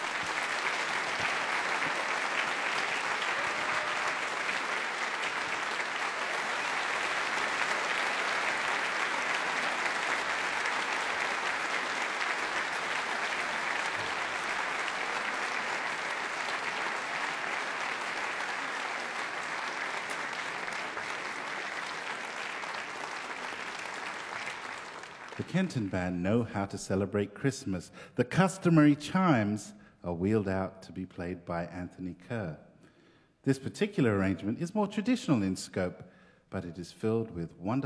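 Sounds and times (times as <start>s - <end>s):
audience applause for a band: 0.0s - 26.0s
speech: 25.4s - 32.6s, 33.4s - 37.8s.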